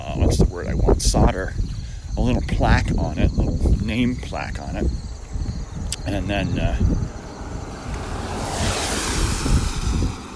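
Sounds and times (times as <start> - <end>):
speech: 0.2 - 5.1, 6.0 - 7.2
low rumbling: 3.0 - 10.3
rushing water on the road: 7.4 - 10.3.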